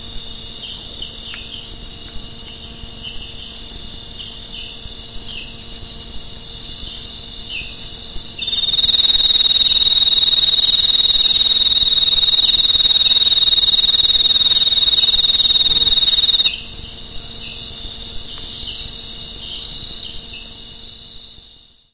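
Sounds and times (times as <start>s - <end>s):
cricket chirping: 0.0s - 21.9s
tree frogs: 0.0s - 21.9s.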